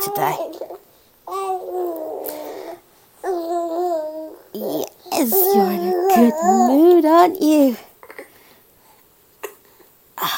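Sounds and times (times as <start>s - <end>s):
baby gurgling happily: 0.0s - 8.2s
speech: 0.1s - 1.9s, 4.6s - 7.9s.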